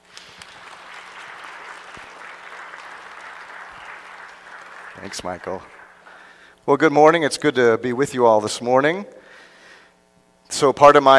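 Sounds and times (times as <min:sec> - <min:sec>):
church congregation clapping to welcome a guest preaching pastor: 0:00.0 - 0:06.6
speech: 0:05.0 - 0:05.8, 0:06.6 - 0:09.2, 0:10.6 - 0:11.1.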